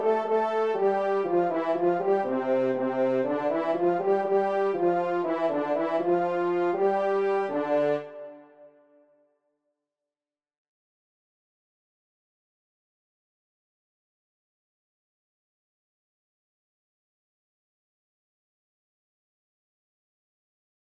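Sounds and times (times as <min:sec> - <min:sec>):
horn in F: 0:00.0 - 0:09.0.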